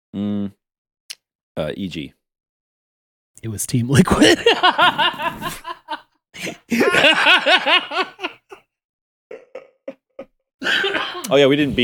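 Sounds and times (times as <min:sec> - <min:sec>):
speech: 0:00.1 - 0:00.6, 0:01.6 - 0:02.2, 0:03.4 - 0:05.8, 0:06.4 - 0:08.4, 0:10.6 - 0:11.8
laughter: 0:04.1 - 0:08.6, 0:09.3 - 0:11.3
person coughing: 0:10.6 - 0:11.3.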